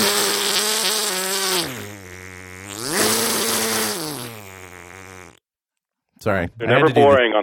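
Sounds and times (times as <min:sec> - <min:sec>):
voice imitating a chainsaw: 0:00.0 - 0:05.4
speech: 0:06.2 - 0:07.4.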